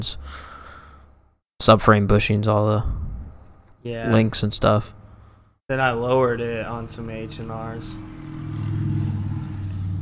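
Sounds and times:
speech: 0.0 - 0.5, 1.6 - 3.0, 3.8 - 5.0, 5.7 - 8.4
motorcycle engine droning by: 6.5 - 10.0.

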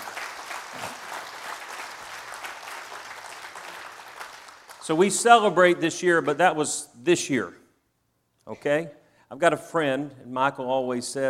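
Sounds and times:
audience clapping hands in praise: 0.0 - 6.4
speech: 4.8 - 7.6, 8.5 - 11.2.

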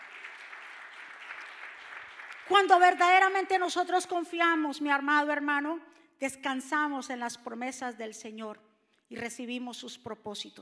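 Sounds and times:
audience applauding loudly: 0.0 - 3.0
speech: 2.5 - 10.6.

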